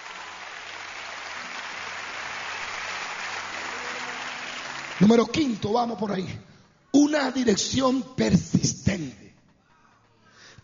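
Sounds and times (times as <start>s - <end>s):
audience applauding: 0.0s - 6.0s
speech: 5.0s - 9.2s.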